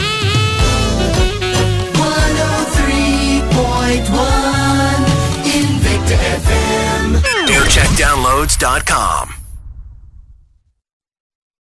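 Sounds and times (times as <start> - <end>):
jingle montage: 0.6 - 9.4.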